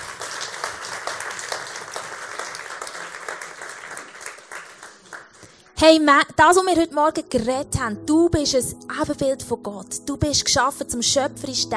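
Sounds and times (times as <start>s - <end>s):
audience applause: 0.0s - 5.4s
speech: 5.8s - 11.7s.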